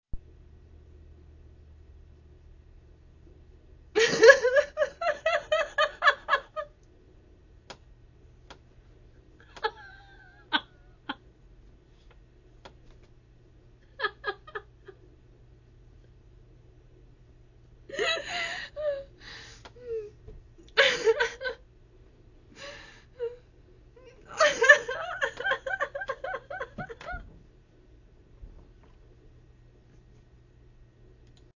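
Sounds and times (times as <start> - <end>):
woman laughing: 4.0 - 6.7, 9.4 - 11.2, 14.0 - 15.0, 17.9 - 19.1, 20.7 - 21.6, 24.1 - 27.3.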